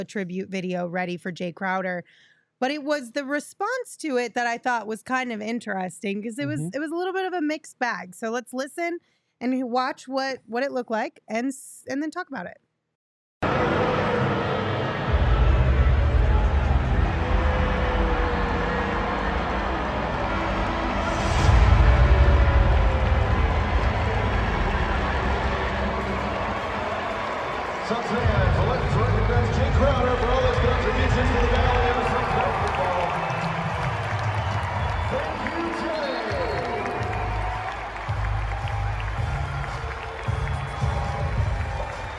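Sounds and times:
speech: 0.0s - 12.6s
arena crowd booing: 13.4s - 42.1s.

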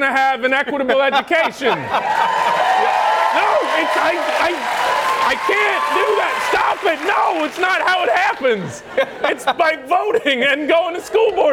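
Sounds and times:
speech: 0.0s - 11.5s
laughter: 0.7s - 11.3s
audience clapping: 2.0s - 8.7s.

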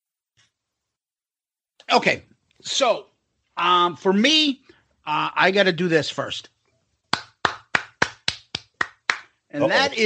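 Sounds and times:
speech: 1.9s - 6.5s, 9.5s - 10.0s
hand clapping: 7.1s - 9.4s.

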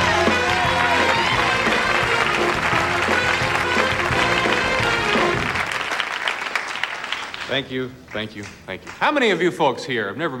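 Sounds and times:
music: 0.0s - 6.4s
studio audience applause: 0.0s - 7.7s
speech: 7.5s - 10.3s.

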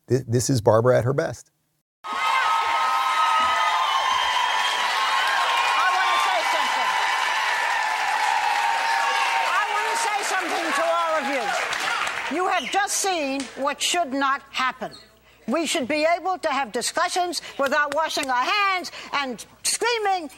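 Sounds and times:
speech: 0.1s - 2.2s, 13.0s - 20.3s
cheers and shouting voices: 2.0s - 12.7s
studio audience applauding: 2.1s - 12.7s.

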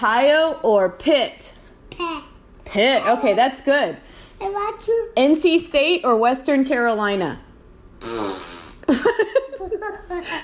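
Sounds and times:
speech: 0.0s - 10.4s
fart noise: 8.0s - 9.1s.

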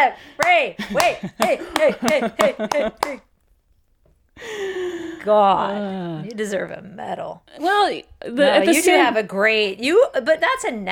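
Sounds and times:
speech: 0.0s - 3.3s, 4.4s - 10.9s
slow sharp hand claps: 0.4s - 3.3s
people laughing: 0.8s - 3.2s.

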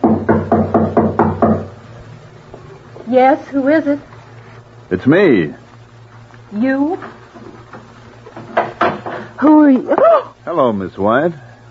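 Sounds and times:
knocking on a door: 0.0s - 1.8s, 8.4s - 9.2s
speech: 3.1s - 4.1s, 4.9s - 5.6s, 6.5s - 7.2s, 9.4s - 11.4s.

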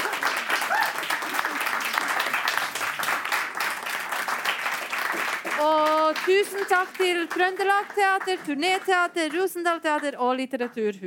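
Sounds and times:
faint cheer: 0.0s - 2.3s
audience applauding: 0.0s - 10.1s
speech: 5.6s - 11.0s.

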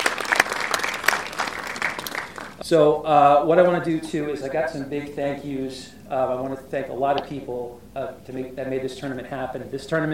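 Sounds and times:
crowd clapping: 0.0s - 2.6s
speech: 2.7s - 10.1s.

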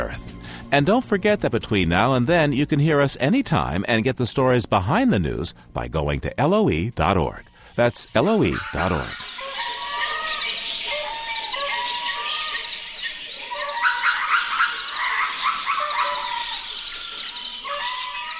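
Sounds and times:
speech: 0.1s - 9.4s
bird chirps and calls in a spiny desert in southern Madagascar: 7.7s - 18.3s.

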